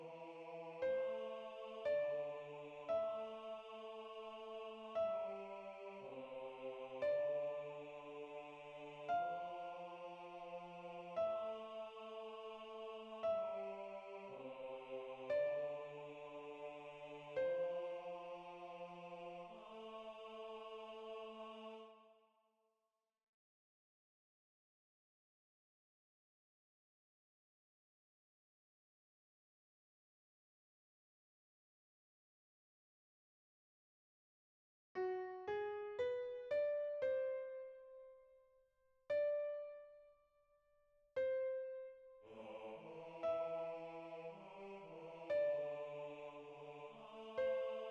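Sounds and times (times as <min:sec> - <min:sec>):
piano: 0:00.7 - 0:21.4, 0:35.0 - 0:38.3, 0:39.1 - 0:39.9, 0:41.2 - 0:47.8.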